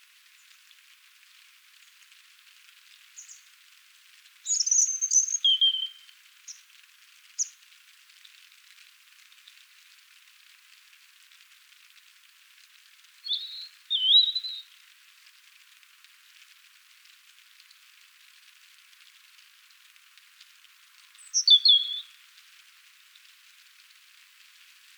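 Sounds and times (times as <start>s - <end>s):
European robin song: 3.2s - 3.4s, 4.5s - 6.6s, 13.2s - 14.7s, 21.2s - 22.2s.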